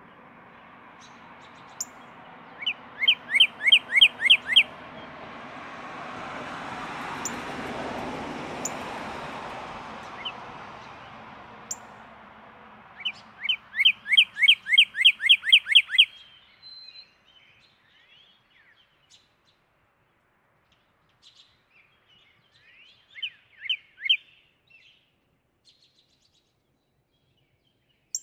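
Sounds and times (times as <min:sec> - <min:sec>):
Northern cardinal song: 0:02.6 - 0:04.7, 0:13.0 - 0:18.7, 0:22.2 - 0:25.0.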